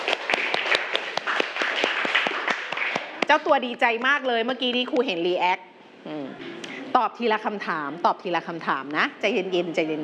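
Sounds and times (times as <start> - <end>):
classroom clapping hands: 0.0 - 4.1
speech: 3.3 - 10.0.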